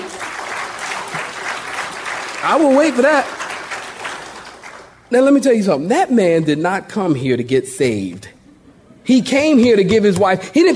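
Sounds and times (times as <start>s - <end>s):
audience clapping: 0.0s - 5.1s
speech: 2.4s - 3.4s, 5.1s - 8.3s, 9.1s - 10.7s.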